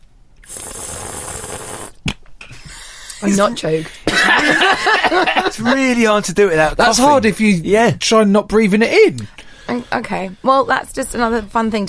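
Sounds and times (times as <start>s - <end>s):
slurping air through wine to aerate it: 0.4s - 2.0s
speech: 3.2s - 11.8s
laughter: 4.0s - 5.9s.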